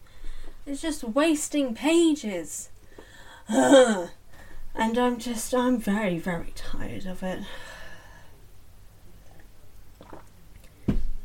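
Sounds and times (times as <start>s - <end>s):
speech: 0.7s - 2.7s, 3.5s - 4.2s, 4.8s - 7.7s
person sipping a drink: 9.1s - 10.8s.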